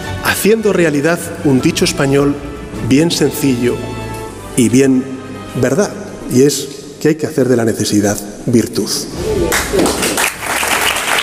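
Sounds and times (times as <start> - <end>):
speech: 0.3 - 4.0, 4.6 - 10.0
audience applauding a political speech: 9.3 - 11.2.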